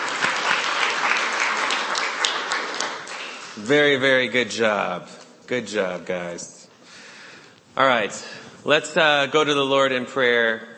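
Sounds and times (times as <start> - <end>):
applause: 0.0 - 4.0
speech: 3.6 - 6.6, 7.8 - 10.7.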